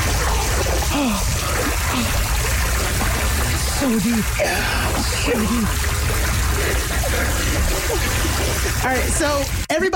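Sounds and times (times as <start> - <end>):
people splashing in a fountain: 0.0 - 9.7
speech: 3.9 - 9.9.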